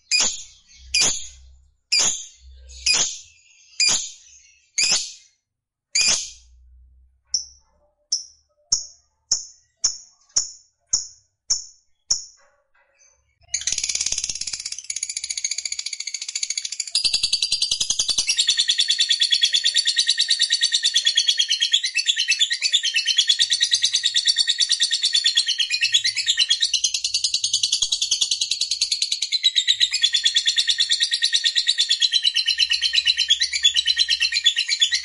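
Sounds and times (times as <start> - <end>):
lovebird chattering song: 0.0 - 5.2, 13.5 - 35.0.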